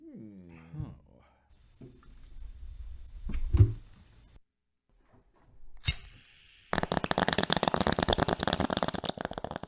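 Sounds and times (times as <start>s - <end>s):
gravity water bong bubbling: 6.8s - 9.6s.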